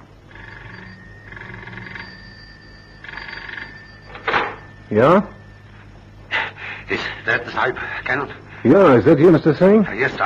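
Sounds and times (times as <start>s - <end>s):
telephone bell ringing: 0.0s - 6.1s
speech: 4.9s - 5.4s, 6.9s - 10.2s.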